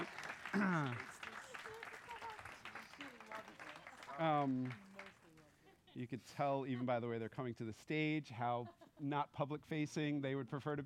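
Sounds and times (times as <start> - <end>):
audience clapping: 0.0 - 5.5
speech: 0.6 - 1.1, 4.2 - 4.9, 6.0 - 10.8.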